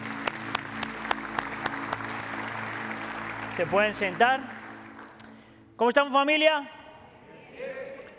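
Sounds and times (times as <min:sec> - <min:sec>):
sparse audience applause: 0:00.0 - 0:05.4
speech: 0:03.6 - 0:04.6, 0:05.8 - 0:06.8.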